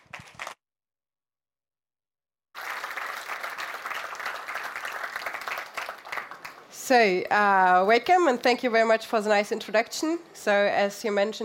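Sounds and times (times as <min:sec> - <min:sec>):
audience applause: 0:02.6 - 0:06.8
speech: 0:06.9 - 0:11.4.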